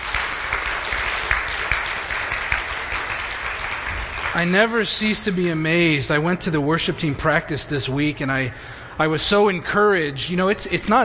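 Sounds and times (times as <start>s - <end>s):
round of applause: 0.0s - 6.0s
speech: 4.4s - 11.0s.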